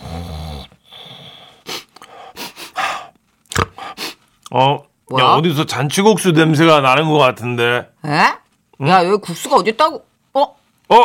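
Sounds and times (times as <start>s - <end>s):
sniffing with the nose: 0.0s - 4.3s
speech: 4.5s - 11.0s.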